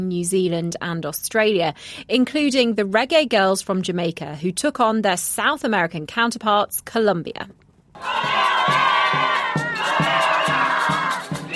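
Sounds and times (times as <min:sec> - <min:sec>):
speech: 0:00.0 - 0:09.2
Colombian football fans roaring and singing: 0:08.0 - 0:11.5.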